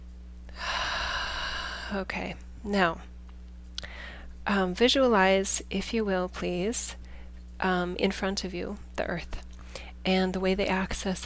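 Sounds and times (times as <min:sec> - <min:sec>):
deep inhale during a guided meditation: 0:00.5 - 0:02.0, 0:03.8 - 0:04.3
speech: 0:01.9 - 0:03.1, 0:04.5 - 0:07.0, 0:07.6 - 0:09.4, 0:10.0 - 0:11.2.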